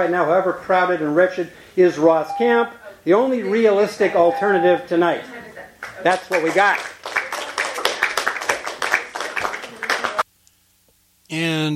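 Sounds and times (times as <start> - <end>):
speech: 0.0 - 6.9, 11.3 - 11.7
smattering of applause: 5.8 - 10.3.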